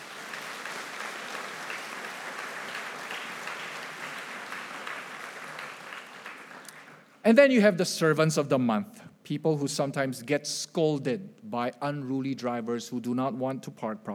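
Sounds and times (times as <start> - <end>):
audience applause: 0.0 - 7.0
speech: 7.3 - 14.1.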